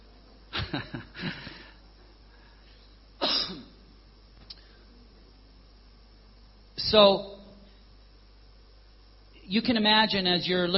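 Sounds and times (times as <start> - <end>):
speech: 0.7 - 1.5, 6.9 - 7.3, 9.5 - 10.7
harsh raspy coughs: 3.2 - 3.8.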